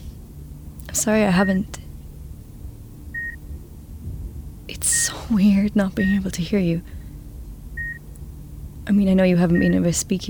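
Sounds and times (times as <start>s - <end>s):
low room hum: 0.0s - 10.2s
speech: 0.9s - 1.8s, 5.3s - 7.0s, 8.9s - 10.2s
soft electronic beep of a patient monitor: 3.2s - 3.4s, 7.8s - 8.0s.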